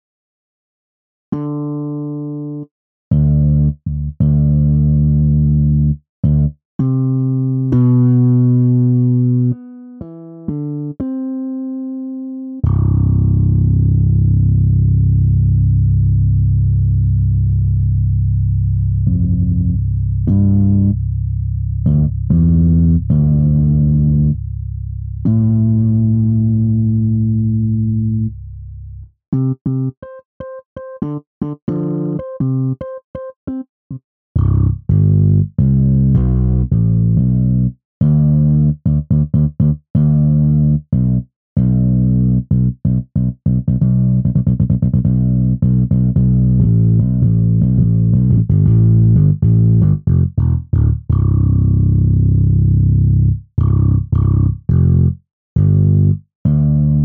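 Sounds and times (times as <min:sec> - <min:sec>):
MODO BASS bass: 0:01.3 - 0:57.0.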